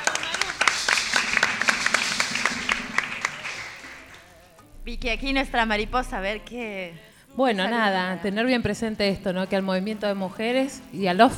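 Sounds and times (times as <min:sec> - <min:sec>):
crowd audience applause: 0:00.0 - 0:04.4
speech: 0:04.9 - 0:11.3.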